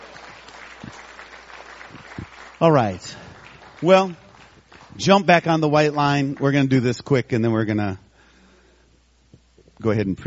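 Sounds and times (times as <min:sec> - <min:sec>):
congregation clapping hands at a church service: 0:00.0 - 0:07.1
speech: 0:02.6 - 0:03.2, 0:03.8 - 0:04.2, 0:05.0 - 0:08.0, 0:09.8 - 0:10.2.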